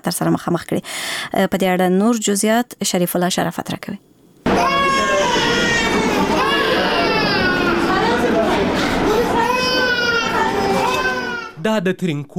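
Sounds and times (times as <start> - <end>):
speech: 0.0 - 4.7, 11.6 - 12.3
children crying in the children's ward of a hospital in Tarinkot: 4.5 - 11.6.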